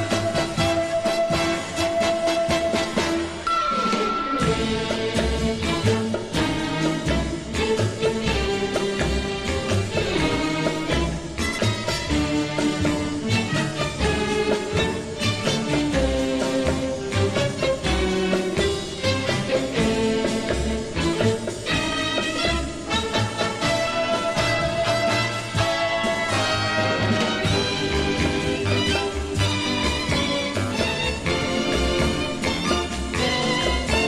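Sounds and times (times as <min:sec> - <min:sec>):
brass: 0:00.0 - 0:34.0
strings: 0:00.0 - 0:34.0.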